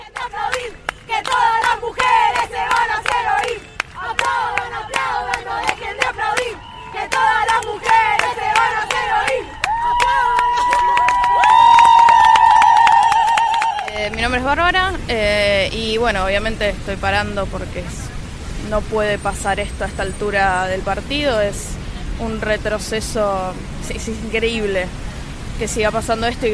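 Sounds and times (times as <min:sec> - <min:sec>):
crowd of women protesters shouting and chanting: 0:00.0 - 0:14.0
whistles: 0:06.5 - 0:07.0
speech: 0:14.5 - 0:25.0, 0:25.6 - 0:26.5.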